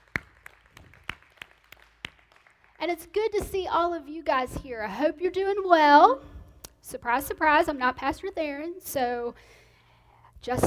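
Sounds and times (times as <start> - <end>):
sparse hand claps from a church congregation: 0.0 - 2.8
speech: 2.8 - 9.6, 10.4 - 10.6.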